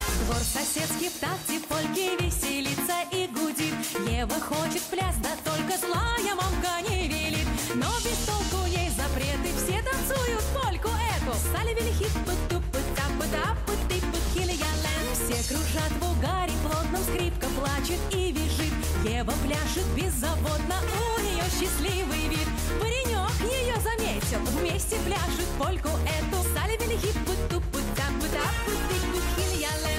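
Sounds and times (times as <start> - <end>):
Russian polka music: 0.0 - 29.9.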